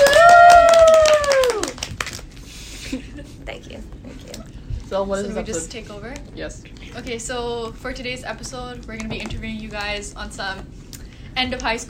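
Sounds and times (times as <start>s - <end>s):
loud drawn-out cheer: 0.0s - 1.8s
small group clapping: 0.0s - 3.0s
speech: 5.0s - 10.8s, 11.4s - 11.8s.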